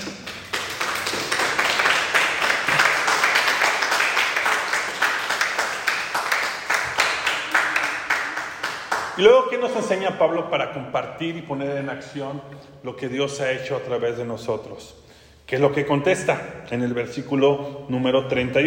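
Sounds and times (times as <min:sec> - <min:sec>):
crowd applauding: 0:00.0 - 0:09.5
speech: 0:09.2 - 0:18.6.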